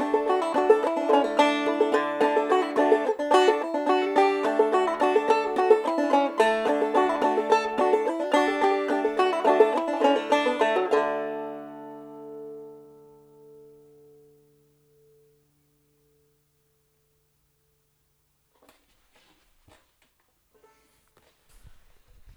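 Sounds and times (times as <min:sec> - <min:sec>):
banjo: 0:00.0 - 0:15.3.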